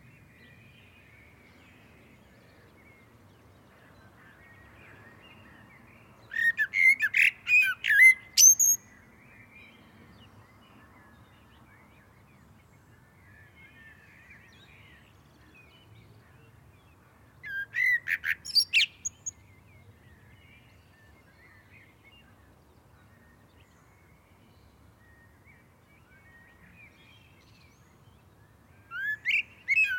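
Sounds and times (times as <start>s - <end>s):
common blackbird song: 6.3s - 8.9s, 17.4s - 19.4s, 28.8s - 29.9s.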